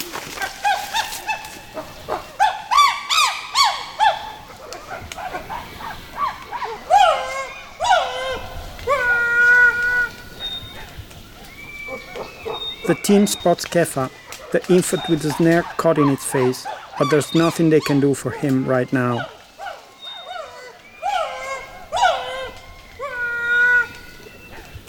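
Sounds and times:
chimpanzee calls: 0:00.1 - 0:24.8
speech: 0:12.9 - 0:19.4.

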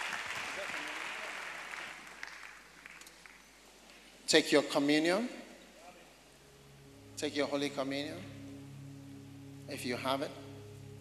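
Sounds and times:
audience applauding: 0:00.0 - 0:03.6
speech: 0:04.3 - 0:05.4, 0:07.2 - 0:08.4, 0:09.7 - 0:10.4.

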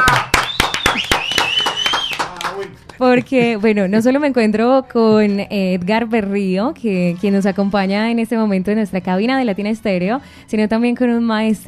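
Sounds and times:
hand claps from a few people in a studio booth: 0:00.0 - 0:03.5
high sustained whistle-like tone: 0:00.3 - 0:02.2
speech: 0:03.0 - 0:11.6.

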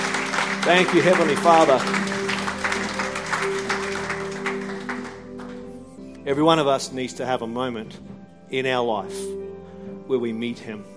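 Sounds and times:
audience clapping: 0:00.0 - 0:05.9
speech: 0:00.7 - 0:02.2, 0:06.3 - 0:09.5, 0:10.1 - 0:10.9.

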